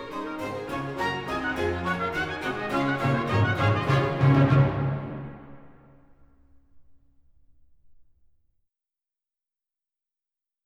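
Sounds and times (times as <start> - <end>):
orchestral concert piece in D: 0.0 - 6.0.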